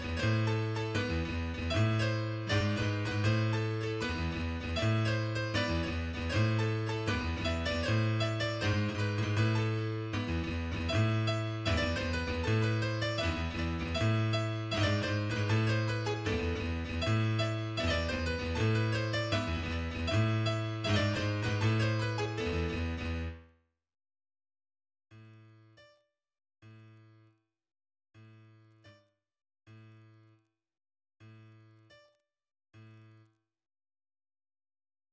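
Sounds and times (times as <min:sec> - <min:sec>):
piano: 0:00.0 - 0:23.5.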